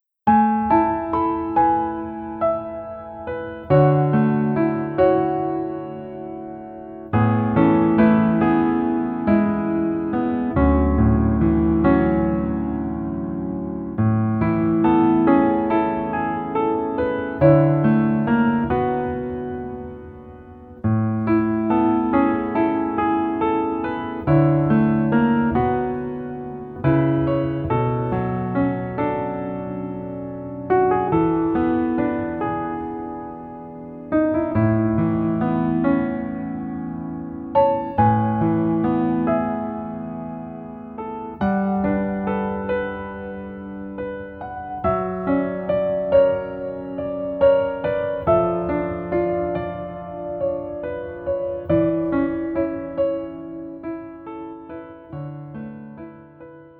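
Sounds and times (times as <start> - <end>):
piano melody backing track in male key: 0.0 - 56.7.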